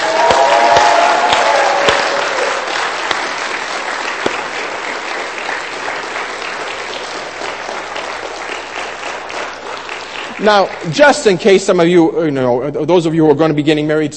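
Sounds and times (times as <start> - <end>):
audience clapping: 0.0 - 12.1
speech: 10.4 - 14.1.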